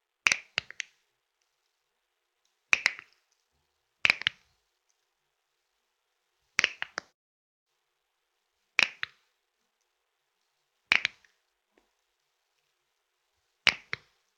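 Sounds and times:
knuckles cracking: 2.7s - 3.3s, 4.0s - 4.4s, 6.6s - 7.1s, 8.8s - 9.2s, 10.9s - 11.9s, 13.7s - 14.2s.

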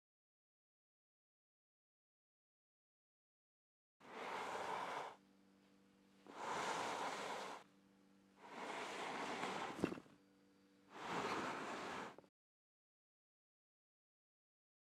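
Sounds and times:
body being dragged: 4.0s - 5.2s, 6.3s - 7.6s, 8.4s - 10.1s, 11.0s - 12.3s.

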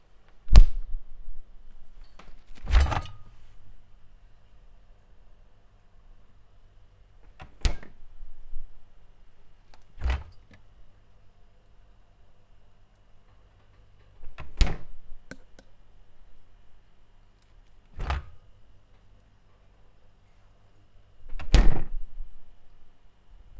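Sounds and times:
fridge and icebox opening and closing: 2.1s - 3.4s, 7.3s - 8.0s, 9.9s - 10.6s, 14.2s - 15.0s, 17.9s - 18.4s, 21.3s - 22.0s.

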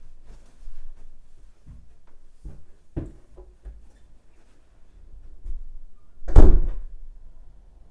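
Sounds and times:
footsteps walking away: 0.0s - 4.6s
door closing: 6.3s - 6.9s.

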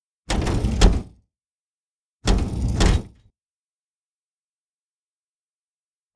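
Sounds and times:
sci-fi metal door opening and closing: 0.3s - 1.1s, 2.3s - 3.2s.

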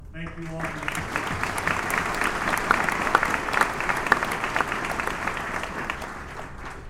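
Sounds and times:
applause: 0.0s - 6.8s.

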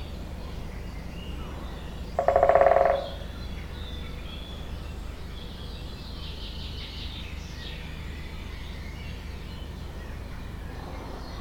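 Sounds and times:
woodpecker drumming: 2.2s - 3.4s.

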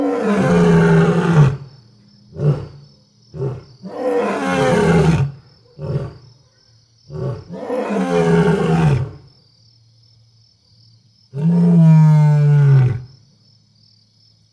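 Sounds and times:
lions screaming at night: 0.0s - 1.6s, 3.4s - 6.2s, 7.1s - 9.2s, 11.4s - 13.1s.

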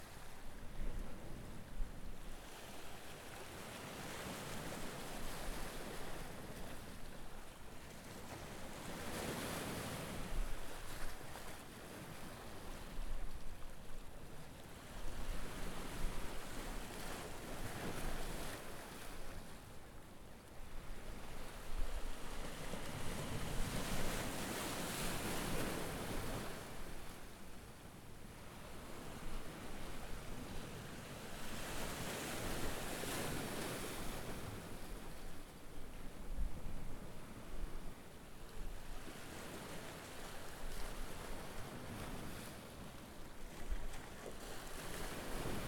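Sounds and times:
waves in Barcelona port: 0.0s - 45.6s.

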